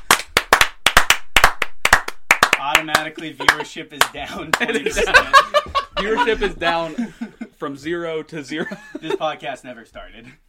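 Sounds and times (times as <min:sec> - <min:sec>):
hand clapping: 0:00.0 - 0:05.0
speech: 0:02.8 - 0:10.4
laughter: 0:03.0 - 0:07.6, 0:08.5 - 0:09.4.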